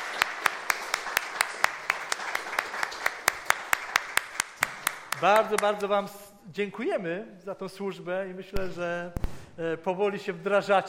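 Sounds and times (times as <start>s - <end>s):
audience applause for a worship band: 0.0s - 5.9s
one person's sharp rhythmic claps: 0.0s - 6.1s
speech: 5.2s - 10.8s.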